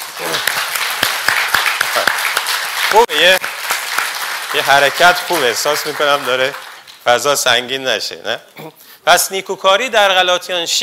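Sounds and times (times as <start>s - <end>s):
church audience clapping for a man who helps at the church: 0.0s - 7.6s
speech: 2.9s - 3.5s, 4.5s - 10.8s.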